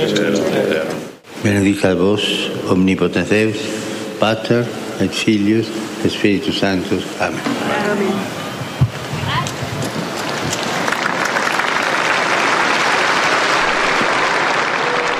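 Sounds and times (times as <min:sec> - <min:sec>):
speech: 0:00.0 - 0:08.4
crowd applause in a public square: 0:09.6 - 0:15.1.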